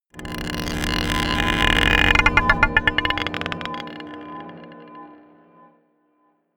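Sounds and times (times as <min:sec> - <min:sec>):
dark drones: 0:00.2 - 0:05.8
scraping a marble pot: 0:00.4 - 0:04.6.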